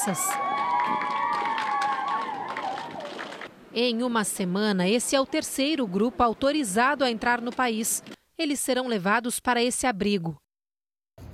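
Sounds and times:
speech: 0.0 - 1.2, 3.7 - 10.4
crowd applauding arriving immigrants in El Paso, Texas: 0.0 - 3.5.

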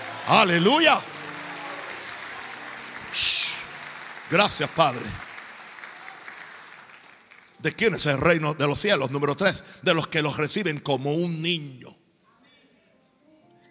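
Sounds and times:
audience applauding: 0.0 - 8.4
speech: 0.3 - 1.1, 4.3 - 5.3, 7.6 - 12.0.

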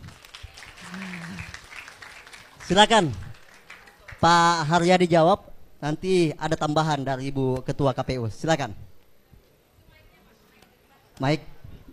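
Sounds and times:
audience applause at a public forum on elections: 0.0 - 4.7
speech: 2.7 - 3.2, 4.2 - 8.8, 11.2 - 11.5.

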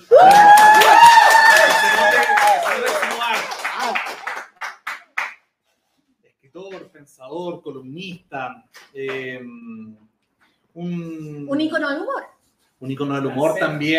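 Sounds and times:
audience applause: 0.0 - 5.3
speech: 10.8 - 13.9.

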